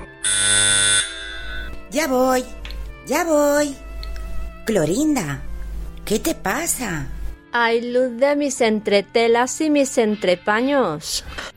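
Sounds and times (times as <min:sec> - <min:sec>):
electric doorbell buzz: 0:00.0 - 0:01.8
speech: 0:01.9 - 0:03.8, 0:04.7 - 0:05.5, 0:06.1 - 0:11.5.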